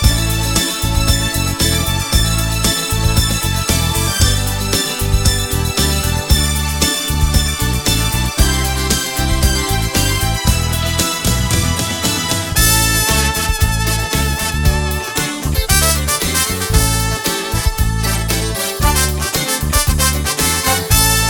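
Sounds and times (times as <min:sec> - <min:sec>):
rhythm and blues music: 0:00.0 - 0:21.2.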